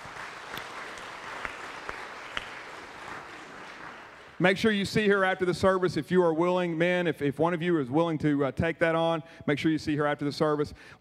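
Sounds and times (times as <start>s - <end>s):
audience applauding: 0.0s - 4.4s
speech: 4.4s - 10.9s.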